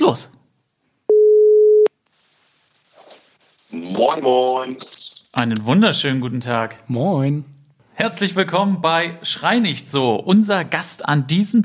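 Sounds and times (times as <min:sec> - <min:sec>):
speech: 0:00.0 - 0:00.4, 0:03.7 - 0:11.6
steady mid-pitched telephone call tone while dialing: 0:01.1 - 0:01.9.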